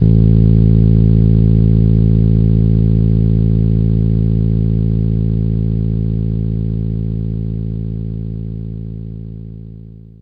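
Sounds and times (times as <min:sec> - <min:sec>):
fretless bass: 0:00.0 - 0:10.1.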